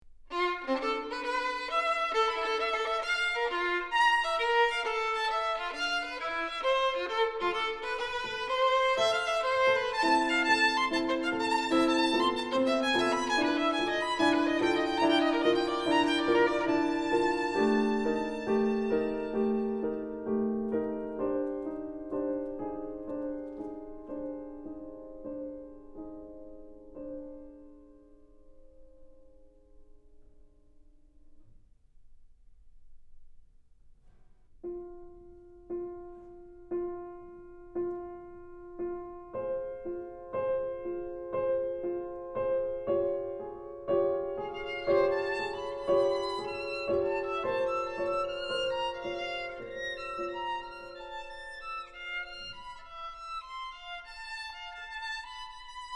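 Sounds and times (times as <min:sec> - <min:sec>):
piano: 0:00.0 - 0:55.9
violin: 0:00.2 - 0:24.3, 0:39.4 - 0:55.9.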